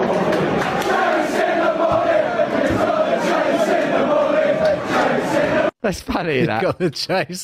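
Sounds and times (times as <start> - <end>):
large crowd of football fans chanting in a stadium: 0.0 - 5.8
speech: 5.9 - 7.4.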